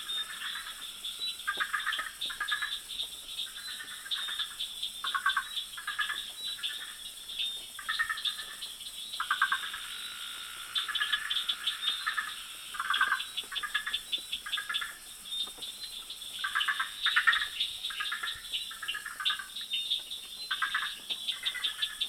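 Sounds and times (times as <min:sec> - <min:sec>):
jungle sounds: 0:00.0 - 0:22.0.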